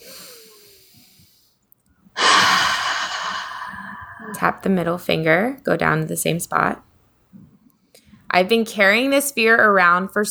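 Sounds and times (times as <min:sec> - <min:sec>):
deep breath during a guided tapping exercise: 0:02.2 - 0:04.9
speech: 0:04.4 - 0:06.9, 0:08.4 - 0:10.3.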